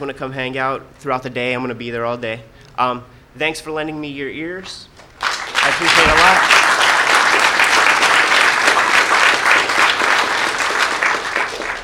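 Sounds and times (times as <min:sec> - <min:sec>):
speech: 0:00.0 - 0:05.0, 0:05.6 - 0:06.6
audience applause: 0:05.2 - 0:11.8.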